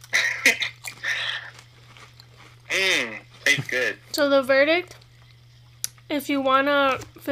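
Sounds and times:
crunching bites into a Philly cheesesteak flavoured potato chip: 0:00.0 - 0:03.7
low steady hum: 0:00.0 - 0:07.2
chewing a potato chip: 0:00.7 - 0:02.7
speech: 0:03.7 - 0:05.0, 0:06.1 - 0:07.2.

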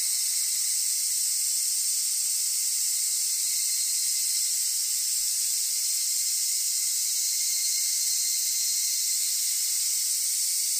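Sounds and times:
large brown cicada sizzling buzz: 0:00.0 - 0:10.7.

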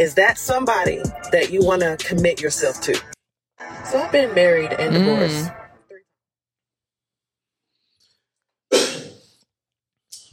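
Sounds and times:
speech: 0:00.0 - 0:03.2, 0:03.8 - 0:05.6
person coughing: 0:08.7 - 0:09.2.

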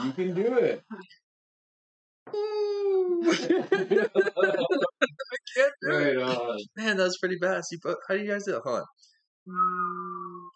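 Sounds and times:
speech: 0:00.0 - 0:01.2, 0:02.3 - 0:10.5
laughter: 0:03.2 - 0:05.2
person humming and whistling at once: 0:09.5 - 0:10.5.

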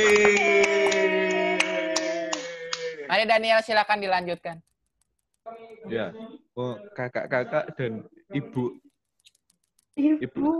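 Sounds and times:
speech: 0:00.0 - 0:00.4, 0:03.2 - 0:04.7, 0:05.5 - 0:08.8, 0:10.0 - 0:10.5
scattered applause for the trainer: 0:00.0 - 0:03.0.

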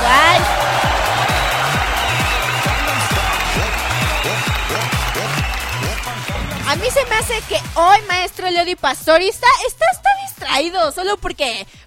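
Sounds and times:
dense steady applause and crowd noise: 0:00.0 - 0:07.8
speech: 0:07.2 - 0:11.8.

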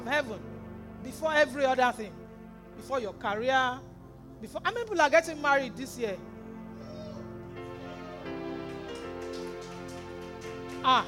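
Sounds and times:
speech: 0:00.1 - 0:02.2, 0:02.8 - 0:06.3, 0:10.8 - 0:11.0
high-pitched cry: 0:06.7 - 0:08.4
audience clapping: 0:07.7 - 0:11.0.

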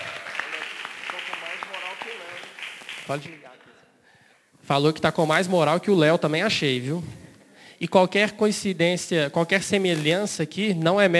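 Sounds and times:
audience applause: 0:00.0 - 0:03.8
speech: 0:03.1 - 0:03.5, 0:04.7 - 0:07.2, 0:07.8 - 0:11.1.

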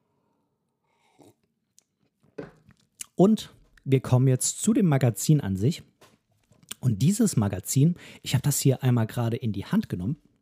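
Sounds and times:
soft slurping sip of coffee: 0:00.9 - 0:01.6
gulp of coffee: 0:00.9 - 0:01.9
speech: 0:03.2 - 0:05.9, 0:06.8 - 0:10.3.

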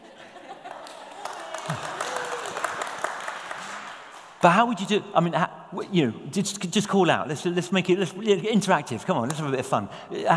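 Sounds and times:
laughter: 0:00.0 - 0:02.0
audience applause: 0:00.6 - 0:04.4
speech: 0:01.7 - 0:02.0, 0:04.4 - 0:10.3.

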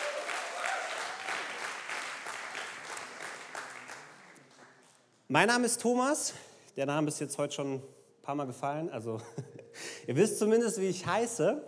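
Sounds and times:
audience applause: 0:00.0 - 0:04.9
speech: 0:05.3 - 0:11.6.

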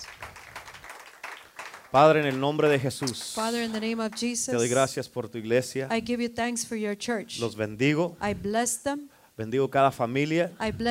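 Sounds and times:
audience clapping: 0:00.0 - 0:04.8
speech: 0:01.9 - 0:10.9.

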